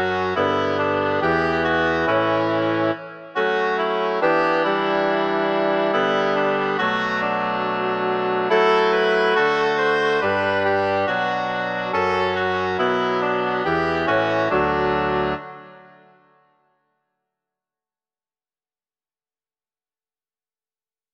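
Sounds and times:
two oboes playing: 0:00.0 - 0:15.8.

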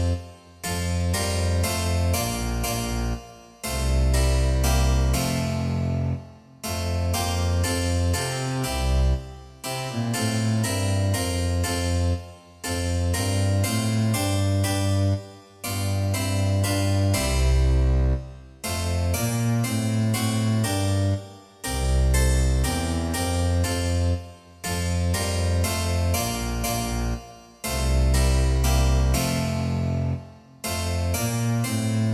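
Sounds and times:
harpsichord: 0:00.0 - 0:32.1
double bass: 0:00.7 - 0:09.2, 0:09.8 - 0:32.1.

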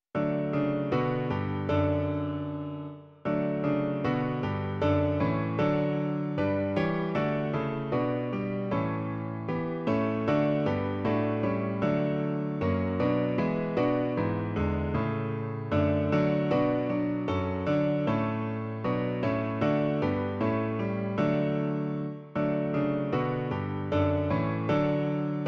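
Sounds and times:
piano version: 0:00.2 - 0:25.4.

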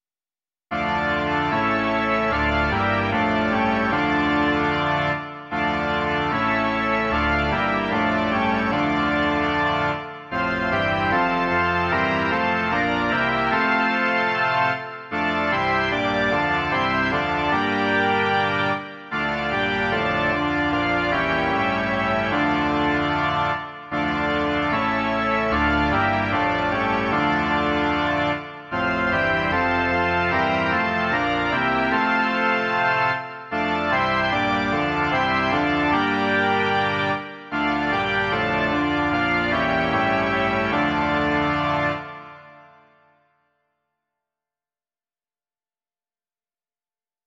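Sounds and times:
organ: 0:00.7 - 0:43.2.

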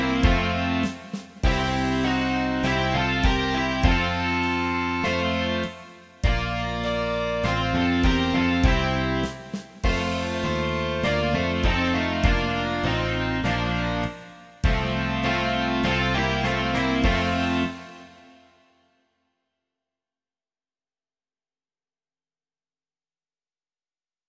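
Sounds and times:
rock music: 0:00.0 - 0:18.2.

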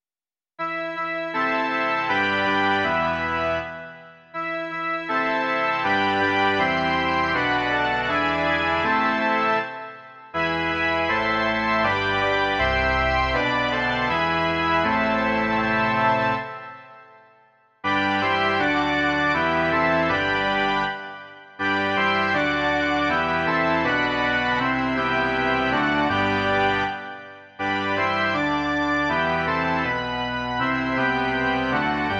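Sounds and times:
organ: 0:00.6 - 0:32.1.

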